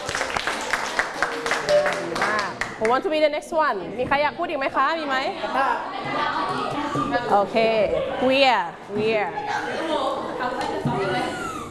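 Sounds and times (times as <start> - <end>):
children clapping for a classmate: 0.0 - 3.0
speech: 2.8 - 10.6.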